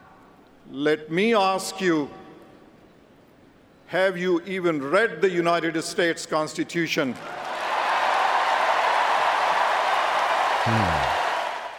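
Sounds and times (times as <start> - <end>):
speech: 0.7 - 2.2, 3.9 - 7.5, 10.6 - 10.9
crowd applause: 7.3 - 11.7
brief voice: 10.7 - 11.2.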